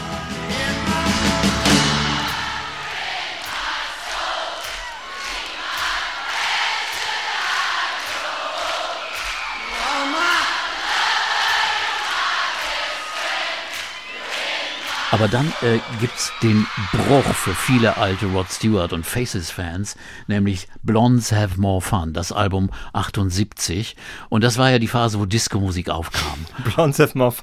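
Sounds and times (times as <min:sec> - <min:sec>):
live concert audience singing along: 0:00.0 - 0:17.8
speech: 0:15.2 - 0:27.4.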